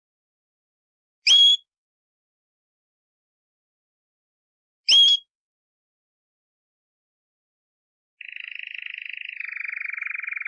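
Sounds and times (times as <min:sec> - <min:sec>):
canary song of buzzy trills and whistled notes: 0:01.2 - 0:01.7, 0:04.9 - 0:05.3, 0:08.2 - 0:10.4.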